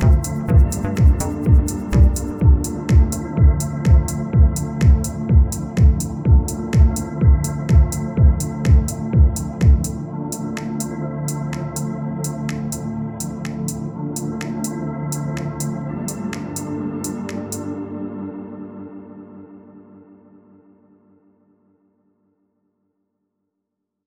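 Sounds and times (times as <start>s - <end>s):
house music: 0.0s - 17.7s.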